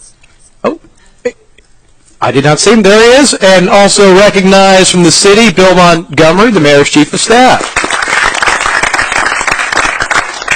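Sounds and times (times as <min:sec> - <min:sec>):
speech: 0:02.2 - 0:07.8
crowd applauding: 0:07.4 - 0:10.5.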